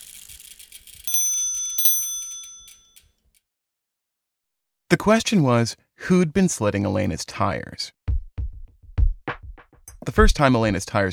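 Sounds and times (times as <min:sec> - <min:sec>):
bicycle bell ringing: 0:00.6 - 0:03.2
speech: 0:04.9 - 0:08.0, 0:10.1 - 0:11.1.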